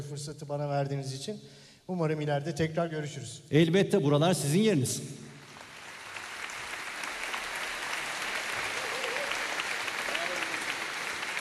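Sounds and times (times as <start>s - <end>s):
speech: 0.0s - 5.2s
audience applauding an orchestra: 5.4s - 11.3s.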